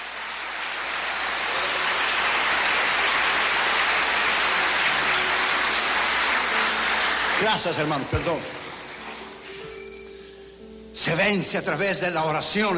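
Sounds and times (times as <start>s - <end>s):
audience applause: 0.0s - 9.6s
speech: 7.4s - 8.6s, 11.0s - 12.7s.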